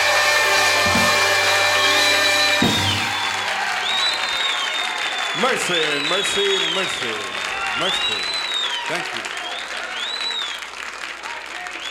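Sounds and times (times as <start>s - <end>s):
shrill whistle from audience: 0.0s - 10.7s
invited audience applauding at a 1966 live jazz recording at Capitol Studios: 0.0s - 11.8s
speech: 5.4s - 9.4s.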